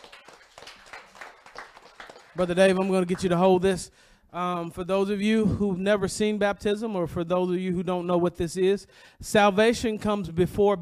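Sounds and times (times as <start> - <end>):
audience clapping hands: 0.0 - 3.6
speech: 2.4 - 10.8.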